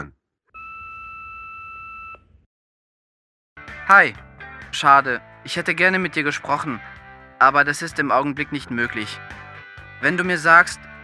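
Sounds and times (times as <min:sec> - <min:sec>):
answering machine beep tone: 0:00.6 - 0:02.2
speech: 0:03.9 - 0:09.4, 0:10.0 - 0:10.9.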